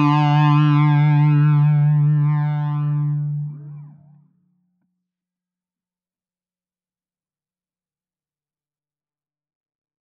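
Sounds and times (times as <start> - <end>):
electric guitar through fuzz, flanger and delay pedals: 0.0 - 4.2.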